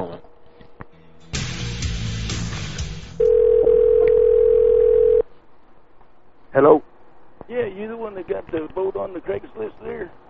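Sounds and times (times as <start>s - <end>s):
dial tone: 3.2s - 5.2s
telephone line noise: 3.2s - 5.2s
speech: 6.6s - 6.9s, 7.5s - 10.2s.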